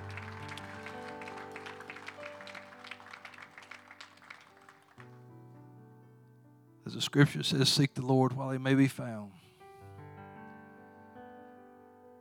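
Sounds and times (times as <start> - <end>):
audience clapping in praise: 0.0 - 5.4
speech: 6.9 - 9.4.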